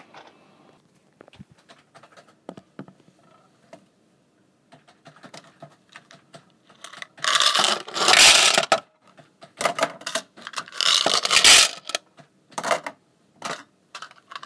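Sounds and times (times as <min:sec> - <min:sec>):
coin counting machine: 0:06.8 - 0:08.8, 0:10.1 - 0:12.0.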